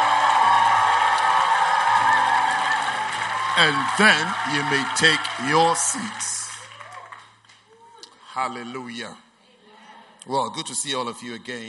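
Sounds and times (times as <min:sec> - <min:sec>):
crowd clapping: 0:00.0 - 0:07.8
speech: 0:03.6 - 0:06.4, 0:08.4 - 0:09.3, 0:10.2 - 0:11.6.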